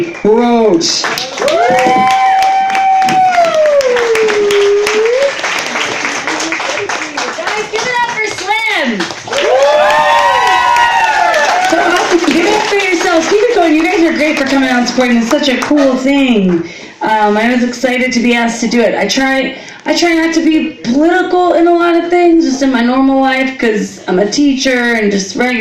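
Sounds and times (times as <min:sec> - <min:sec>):
speech: 0:00.0 - 0:02.2, 0:13.2 - 0:25.5
crowd applause: 0:01.0 - 0:15.0
crowd whoops and cheers: 0:01.2 - 0:05.4, 0:09.3 - 0:12.6.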